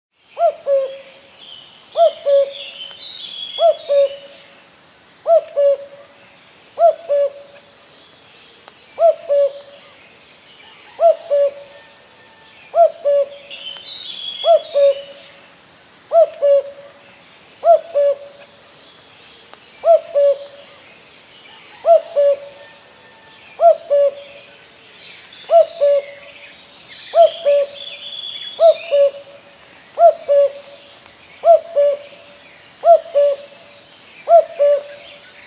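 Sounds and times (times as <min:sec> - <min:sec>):
common cuckoo calling: 0:00.4 - 0:01.2, 0:02.0 - 0:04.4, 0:05.2 - 0:06.1, 0:06.8 - 0:07.7, 0:09.0 - 0:09.8, 0:10.6 - 0:15.3, 0:16.1 - 0:16.9, 0:17.6 - 0:18.5, 0:19.8 - 0:20.8, 0:21.6 - 0:24.6, 0:25.4 - 0:26.4, 0:27.1 - 0:35.2.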